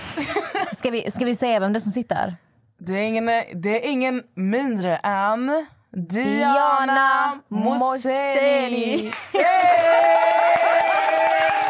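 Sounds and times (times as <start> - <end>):
speech: 0.2 - 11.6
applause: 9.0 - 11.6.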